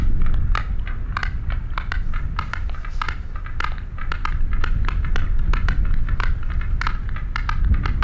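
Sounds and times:
low rumble: 0.0s - 8.0s
sperm whale click sequences: 0.0s - 8.0s.

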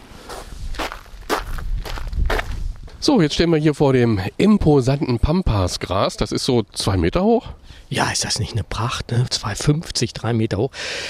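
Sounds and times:
footsteps walking through a garden toward pampas grass: 0.0s - 3.0s
speech: 3.0s - 11.0s.

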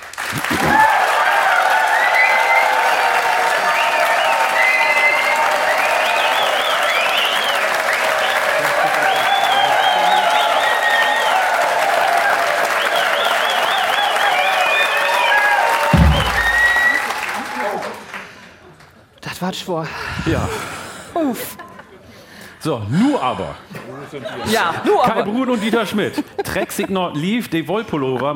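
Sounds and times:
audience applause: 0.0s - 18.8s
speech: 19.5s - 21.6s, 22.6s - 28.3s
laughter: 21.2s - 22.2s, 23.7s - 27.2s.

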